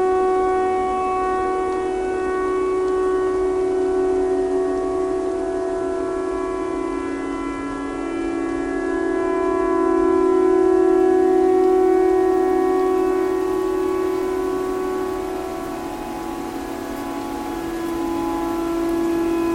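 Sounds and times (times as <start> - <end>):
tornado siren: 0.0 - 19.5.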